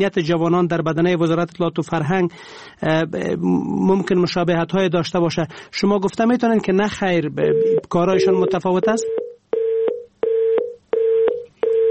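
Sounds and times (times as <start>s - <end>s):
speech: 0.0s - 9.2s
telephone busy tone after call disconnects: 7.5s - 11.8s.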